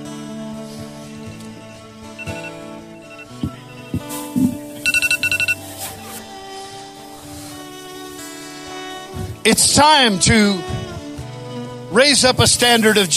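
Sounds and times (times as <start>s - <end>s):
timer alarm ringing: 2.2s - 5.6s
speech: 4.4s - 4.6s, 9.5s - 10.8s, 12.0s - 13.1s.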